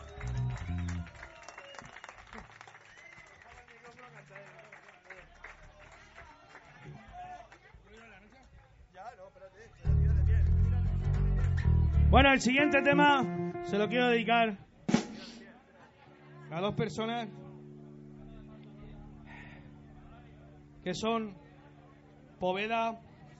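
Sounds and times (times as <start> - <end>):
audience applause and cheering: 0.0 - 7.1, 10.0 - 12.3
speech: 12.1 - 14.6, 16.6 - 17.4, 20.9 - 21.4, 22.4 - 23.0.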